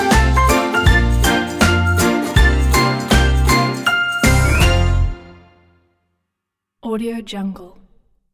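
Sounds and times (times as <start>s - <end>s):
happy children: 0.0s - 5.4s.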